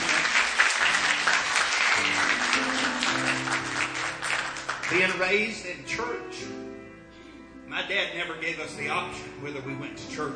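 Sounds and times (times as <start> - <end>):
audience applause: 0.0 - 5.2
speech: 4.9 - 6.7, 7.7 - 10.3.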